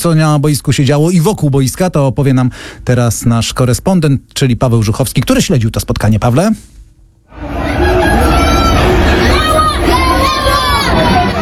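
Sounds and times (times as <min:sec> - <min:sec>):
speech: 0:00.0 - 0:06.7
Polish fans shouting to welcome Robert Lewandowski in Florida: 0:07.3 - 0:11.3.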